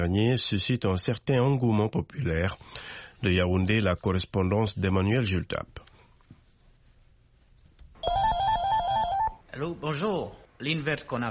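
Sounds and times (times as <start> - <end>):
speech: 0.1 - 5.8, 9.6 - 11.2
telephone ringing: 8.0 - 9.4.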